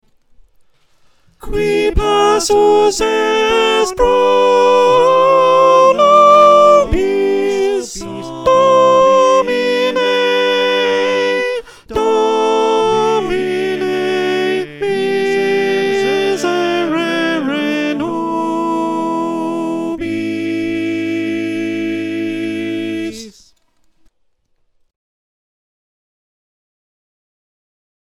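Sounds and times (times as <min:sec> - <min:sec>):
soprano singing a sacred choral piece: 0:01.4 - 0:23.5.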